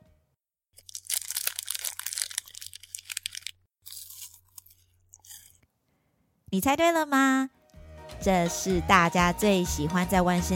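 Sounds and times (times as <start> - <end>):
candy wrapper being opened: 0.7 - 5.6
speech: 6.5 - 7.6, 8.2 - 10.5.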